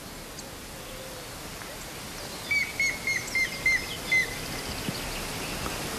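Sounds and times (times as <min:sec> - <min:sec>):
hiss: 0:00.0 - 0:05.9
grey-headed woodpecker calling: 0:02.5 - 0:04.4.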